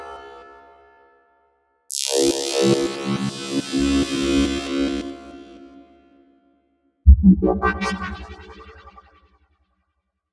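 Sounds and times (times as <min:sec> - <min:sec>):
dubstep music samples: 0:01.9 - 0:05.9, 0:07.1 - 0:09.0.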